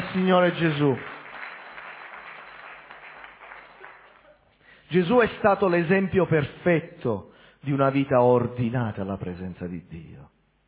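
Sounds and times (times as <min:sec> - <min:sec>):
audience applause: 0:00.0 - 0:04.4
speech: 0:00.2 - 0:01.1, 0:04.9 - 0:10.3.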